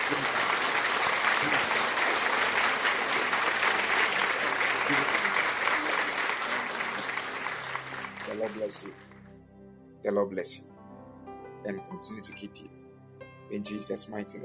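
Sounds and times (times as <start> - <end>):
audience clapping: 0.0 - 9.3
speech: 8.5 - 9.1, 10.0 - 10.8, 11.6 - 12.8, 13.5 - 14.4.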